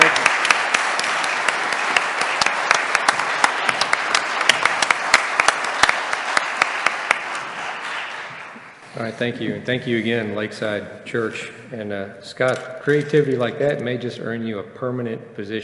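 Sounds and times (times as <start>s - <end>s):
audience applause: 0.0s - 8.8s
speech: 9.0s - 15.6s.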